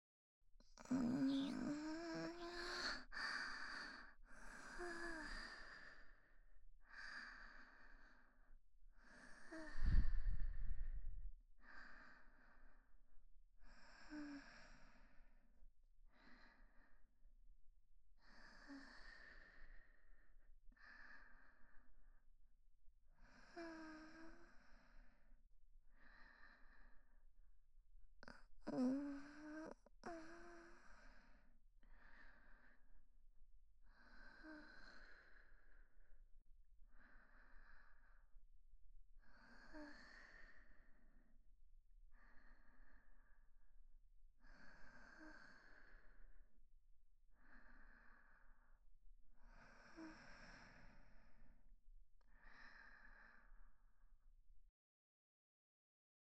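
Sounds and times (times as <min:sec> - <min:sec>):
woman breathing calmly in sleep beside her boyfriend: 0:00.8 - 0:13.0, 0:13.6 - 0:15.4, 0:16.1 - 0:17.1, 0:18.2 - 0:22.0, 0:25.9 - 0:27.2, 0:28.2 - 0:33.0, 0:33.8 - 0:36.2, 0:36.9 - 0:38.4, 0:39.2 - 0:41.4, 0:42.1 - 0:43.6, 0:44.4 - 0:46.5, 0:47.3 - 0:53.9.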